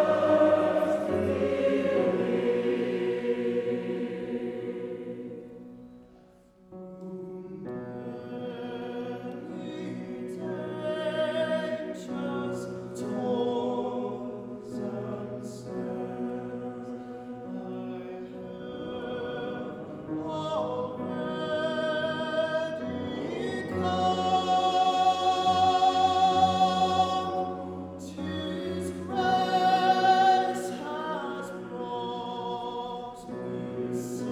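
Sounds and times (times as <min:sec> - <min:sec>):
tenor choir singing a hymn: 0:00.0 - 0:34.3.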